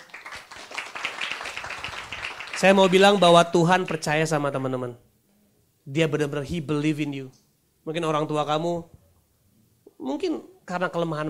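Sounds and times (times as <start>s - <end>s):
audience clapping: 0.0s - 4.2s
speech: 2.6s - 5.1s, 5.8s - 9.0s, 10.0s - 11.2s.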